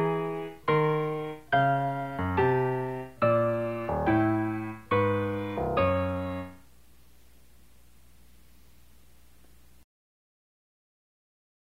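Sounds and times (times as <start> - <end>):
piano: 0.0 - 6.7.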